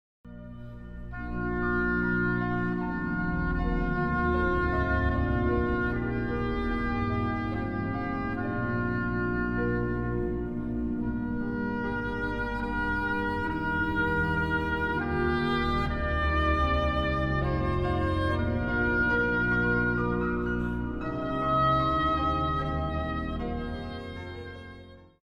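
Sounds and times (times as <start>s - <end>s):
instrumental intermezzo: 0.2s - 25.2s.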